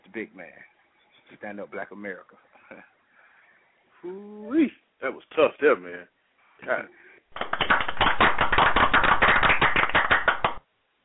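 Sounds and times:
speech: 0:00.2 - 0:00.7, 0:01.3 - 0:03.0, 0:04.0 - 0:07.8
applause: 0:07.3 - 0:10.6.

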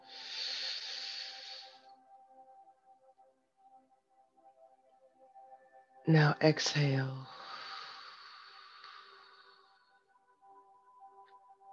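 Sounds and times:
deep inhale during a guided breathing meditation: 0:00.0 - 0:01.9, 0:07.3 - 0:10.1
soft sustained musical drone: 0:00.0 - 0:11.7
speech: 0:06.1 - 0:07.3.

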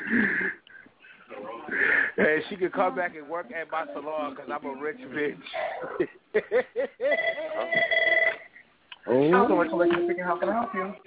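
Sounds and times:
speech: 0:02.2 - 0:07.8, 0:09.1 - 0:11.0
laughter: 0:05.8 - 0:07.9
telephone ringing: 0:07.1 - 0:08.6.

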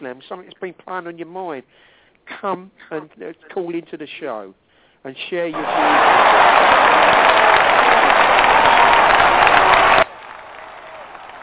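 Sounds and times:
speech: 0:00.0 - 0:07.7
round of applause: 0:05.5 - 0:11.4.

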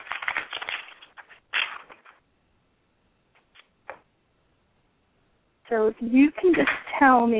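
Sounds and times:
shuffling a deck of cards: 0:00.0 - 0:02.2
speech: 0:05.7 - 0:07.3.

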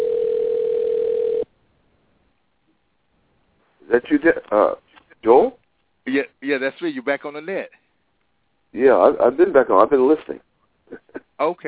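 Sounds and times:
phone dialing out: 0:00.0 - 0:01.4
speech: 0:04.0 - 0:07.8, 0:08.7 - 0:11.6.

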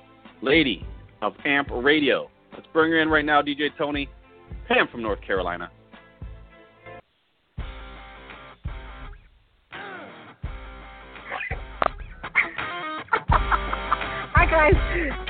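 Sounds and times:
speech: 0:00.4 - 0:05.8
pet bird chirping and squawking: 0:11.3 - 0:12.6
laughter: 0:12.2 - 0:15.2.

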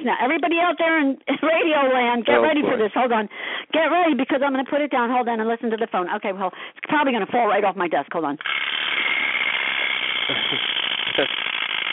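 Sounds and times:
speech: 0:00.0 - 0:09.1, 0:10.3 - 0:11.4
Uncle Floyd's wind-up chattering teeth toy clattering: 0:08.4 - 0:11.9.

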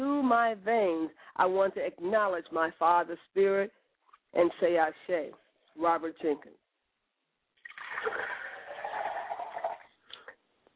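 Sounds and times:
speech: 0:00.3 - 0:06.6
liquid poured out as a libation: 0:07.6 - 0:10.0.

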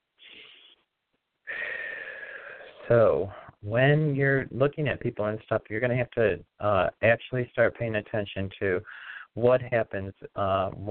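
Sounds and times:
breath in through the nose: 0:01.5 - 0:02.8
exhale through the mouth: 0:01.5 - 0:02.8, 0:08.9 - 0:09.3
speech: 0:02.9 - 0:10.8.

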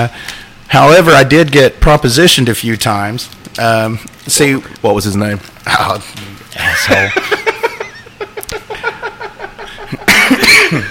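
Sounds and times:
speech: 0:00.0 - 0:07.5
laughter: 0:06.6 - 0:10.8
cough: 0:10.1 - 0:10.8.

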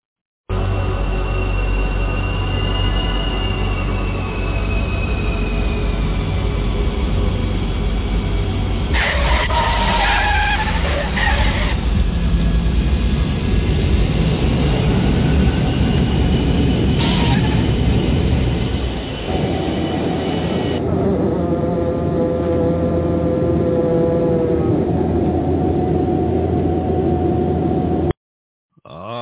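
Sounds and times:
tire squeal: 0:00.5 - 0:21.5
airplane landing: 0:00.5 - 0:28.1.

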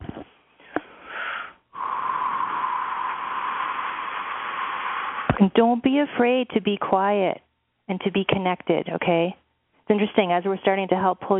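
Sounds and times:
healer breathing during healing: 0:00.5 - 0:05.4
speech: 0:05.4 - 0:11.3.

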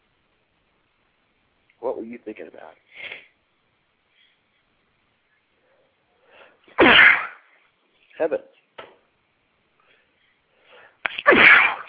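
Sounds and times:
speech: 0:01.8 - 0:03.2, 0:08.2 - 0:08.6
sneeze: 0:06.7 - 0:07.5, 0:11.1 - 0:11.8.

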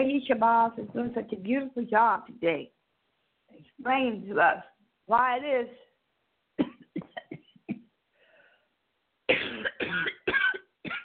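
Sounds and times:
speech: 0:00.0 - 0:02.8, 0:03.7 - 0:05.8
person coughing: 0:06.6 - 0:07.9, 0:09.3 - 0:11.0.

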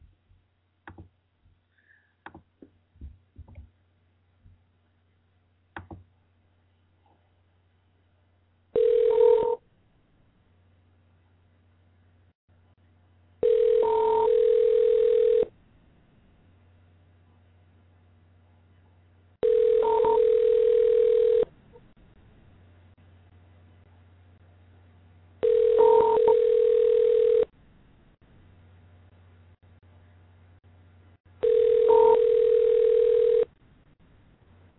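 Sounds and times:
faint clicks and taps: 0:00.2 - 0:01.6, 0:02.2 - 0:03.8, 0:05.7 - 0:06.1
outgoing phone call ringback tone: 0:08.8 - 0:09.6, 0:13.4 - 0:15.5, 0:19.4 - 0:21.5, 0:25.4 - 0:27.5, 0:31.4 - 0:33.5.

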